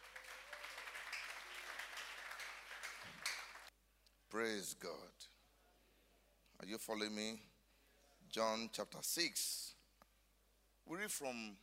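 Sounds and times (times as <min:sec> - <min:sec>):
audience clapping: 0:00.0 - 0:03.7
speech: 0:04.3 - 0:05.3, 0:06.6 - 0:07.5, 0:08.2 - 0:09.6, 0:10.9 - 0:11.6.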